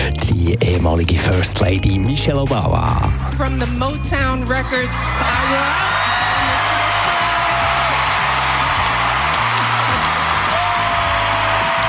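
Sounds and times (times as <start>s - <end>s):
speech: 0.3s - 6.4s
audience applause at the Grammys: 5.0s - 11.8s.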